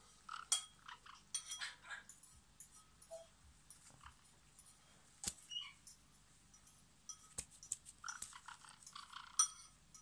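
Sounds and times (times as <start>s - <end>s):
parrot chattering with harsh squawks, clicks and short high whistles: 0.3s - 2.1s, 5.5s - 5.9s, 8.0s - 9.6s.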